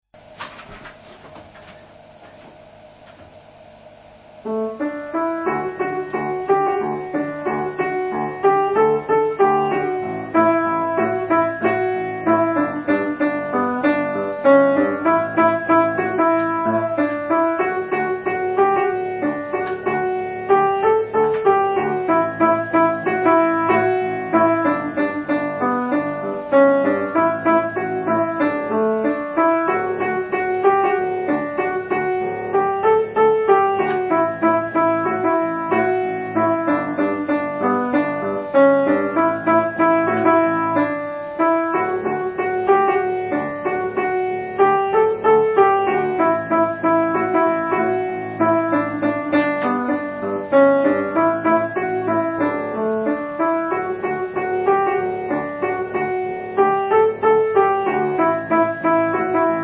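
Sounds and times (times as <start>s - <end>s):
piano: 0.1s - 59.6s.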